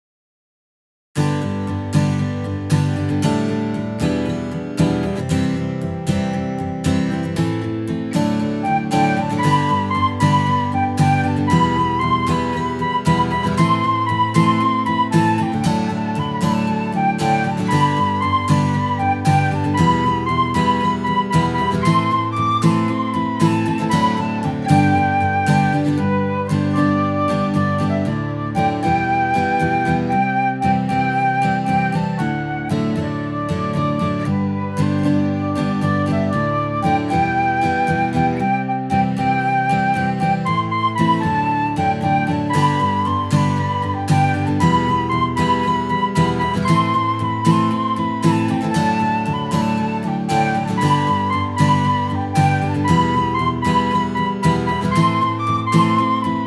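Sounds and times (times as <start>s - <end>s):
instrumental music: 1.2s - 56.4s.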